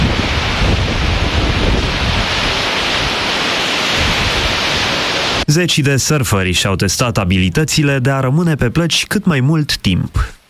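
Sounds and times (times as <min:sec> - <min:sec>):
strong wind at beach: 0:00.0 - 0:05.5
sea waves at beach: 0:00.0 - 0:05.7
speech: 0:05.5 - 0:10.4.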